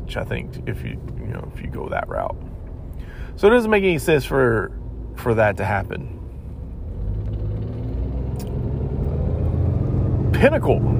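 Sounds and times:
speech: 0.1s - 2.5s, 3.4s - 6.2s, 10.3s - 10.9s
motorcycle driving by: 7.0s - 10.9s.

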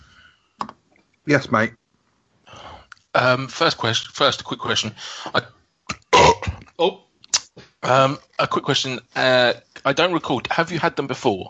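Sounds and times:
speech: 1.3s - 1.8s, 3.1s - 5.6s, 6.8s - 7.1s, 7.8s - 11.4s
burp: 5.9s - 6.7s.

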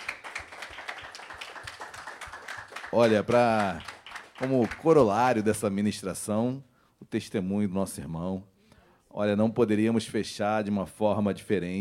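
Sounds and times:
audience applause: 0.0s - 5.1s
speech: 2.9s - 8.5s, 9.2s - 11.7s.

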